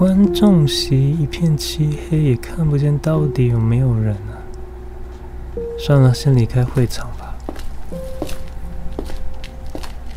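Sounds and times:
speech: 0.0s - 4.4s, 5.8s - 7.2s
low steady hum: 0.0s - 10.1s
heavy footsteps: 6.6s - 10.1s.

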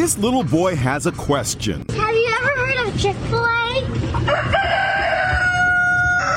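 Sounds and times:
speech: 0.0s - 4.9s
rooster crowing: 4.3s - 6.3s.

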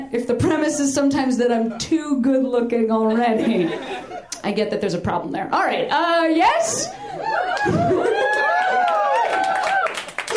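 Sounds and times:
speech: 0.1s - 8.1s
laughter: 3.1s - 4.4s, 7.0s - 9.6s
audience wooing: 7.0s - 10.3s
scattered audience clapping: 7.5s - 10.3s.

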